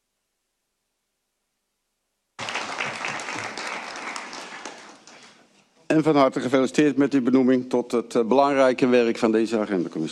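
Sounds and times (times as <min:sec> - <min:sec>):
applause in a council meeting approving an appointment: 0:02.4 - 0:05.5
speech: 0:05.9 - 0:10.0.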